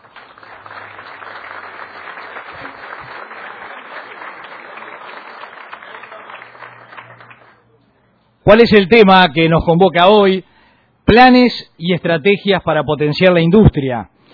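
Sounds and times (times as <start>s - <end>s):
audience applause: 0.0s - 7.8s
speech: 8.5s - 10.5s, 11.1s - 14.1s.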